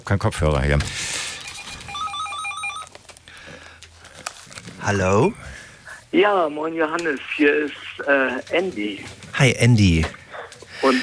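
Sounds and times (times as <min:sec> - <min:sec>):
speech: 0:00.0 - 0:01.1, 0:04.8 - 0:10.2, 0:10.8 - 0:11.0
telephone ringing: 0:01.0 - 0:03.0.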